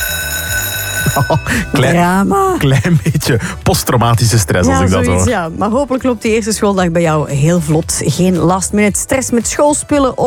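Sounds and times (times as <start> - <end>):
school bell ringing: 0.0 - 2.1
speech: 1.2 - 10.2.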